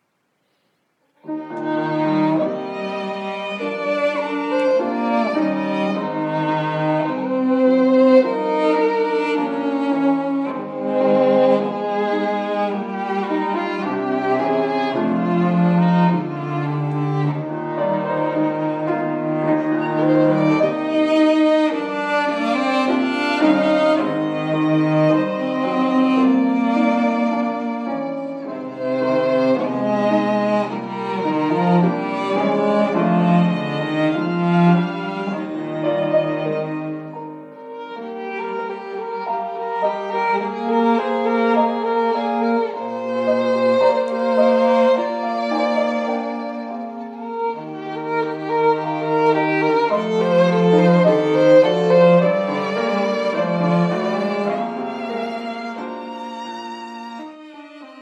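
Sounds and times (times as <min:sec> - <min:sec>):
piano trio: 0:01.0 - 0:58.0.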